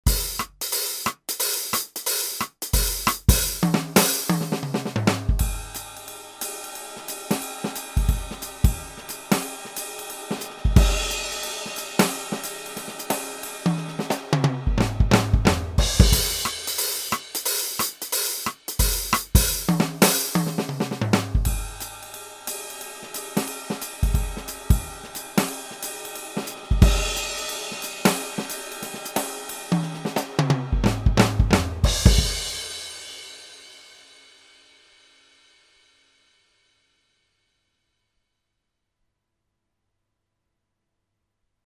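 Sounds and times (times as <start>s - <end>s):
jazz music: 2.7s - 32.7s.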